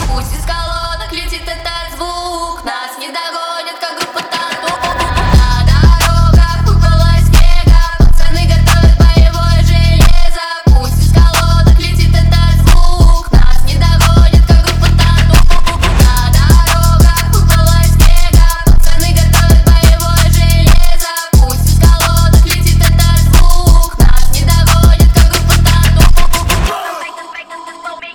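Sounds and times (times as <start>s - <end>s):
phonk music: 0.0s - 28.1s.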